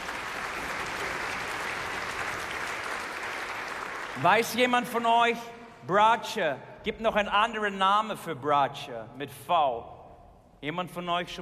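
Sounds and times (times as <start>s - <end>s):
audience applause: 0.0s - 4.5s
speech: 4.2s - 9.9s, 10.6s - 11.4s.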